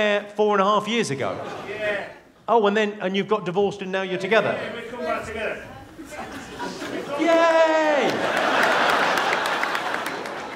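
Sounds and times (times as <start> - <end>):
speech: 0.0 - 6.4, 7.2 - 8.4
laughter: 1.2 - 2.2, 6.0 - 10.5
audience applauding: 7.5 - 10.5.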